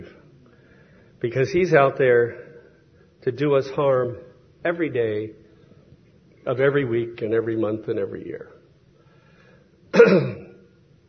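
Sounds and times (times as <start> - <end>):
speech: 1.2 - 2.5, 3.2 - 5.4, 6.4 - 8.6, 10.1 - 10.4
person with asthma clearing throat: 9.9 - 10.6.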